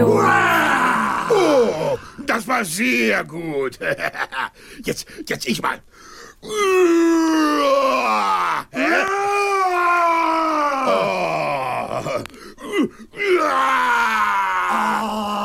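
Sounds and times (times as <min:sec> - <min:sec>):
person imitating a roar: 0:00.1 - 0:02.2, 0:06.6 - 0:12.2, 0:13.2 - 0:15.4
speech: 0:02.3 - 0:15.4.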